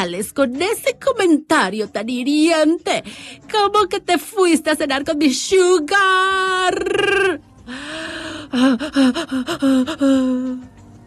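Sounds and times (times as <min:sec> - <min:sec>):
speech: 0:00.0 - 0:10.7
anxious gasping breaths: 0:03.0 - 0:03.5, 0:07.6 - 0:10.8.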